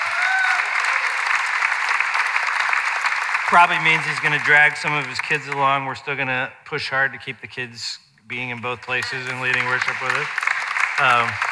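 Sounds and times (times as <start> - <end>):
audience clapping: 0.0 - 6.0, 8.4 - 11.5
speech: 3.5 - 10.4, 11.0 - 11.5.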